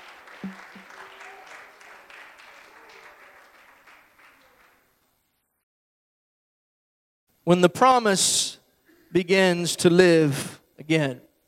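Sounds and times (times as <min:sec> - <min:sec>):
audience clapping hands: 0:00.0 - 0:05.0
speech: 0:07.5 - 0:11.3.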